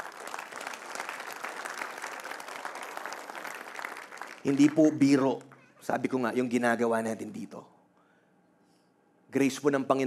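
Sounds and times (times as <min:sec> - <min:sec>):
church congregation applauding its volunteers: 0:00.0 - 0:06.0
speech: 0:04.4 - 0:07.7, 0:09.3 - 0:10.0.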